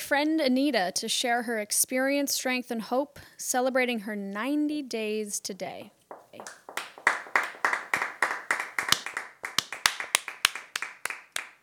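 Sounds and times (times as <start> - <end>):
speech: 0.1 - 6.6
lackluster applause from a small group: 6.1 - 11.6.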